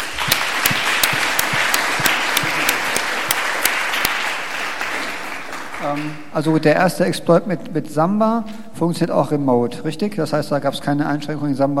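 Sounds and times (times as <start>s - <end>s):
audience applause: 0.0s - 6.3s
speech: 5.9s - 11.7s.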